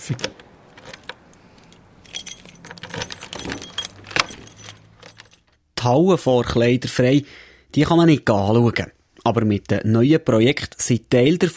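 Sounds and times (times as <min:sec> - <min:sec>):
speech: 0:00.0 - 0:00.5, 0:05.8 - 0:11.5
low hum: 0:00.0 - 0:05.6
keys jangling while locking doors: 0:00.6 - 0:05.6
sharp click of door lock: 0:02.5 - 0:05.4.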